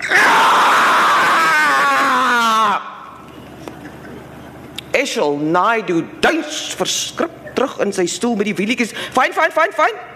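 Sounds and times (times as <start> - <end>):
raw scream: 0.0 - 3.0
speech: 5.2 - 10.1.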